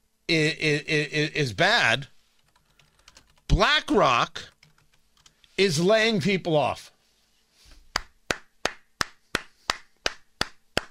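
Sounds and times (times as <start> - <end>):
speech: 0.3 - 2.1, 3.5 - 4.5, 5.6 - 6.9
hands clapping: 7.9 - 10.8.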